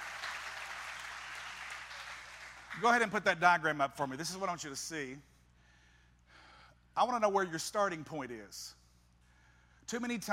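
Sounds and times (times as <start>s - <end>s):
audience applause: 0.0s - 3.0s
speech: 2.8s - 5.3s, 7.0s - 8.8s, 9.9s - 10.3s.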